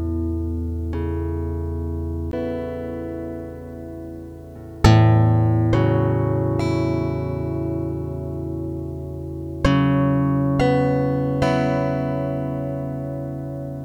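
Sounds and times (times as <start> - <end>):
two guitars improvising: 0.0 - 13.8.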